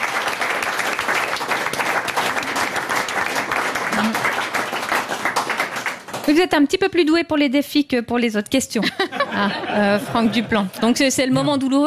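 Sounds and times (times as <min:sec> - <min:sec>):
audience applause: 0:00.0 - 0:06.4
speech: 0:06.3 - 0:11.8
laughter: 0:08.8 - 0:11.8.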